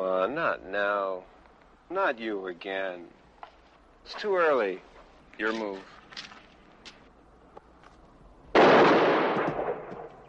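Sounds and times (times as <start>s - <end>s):
speech: 0.3s - 3.2s, 4.0s - 6.3s
gunshot: 8.6s - 10.2s.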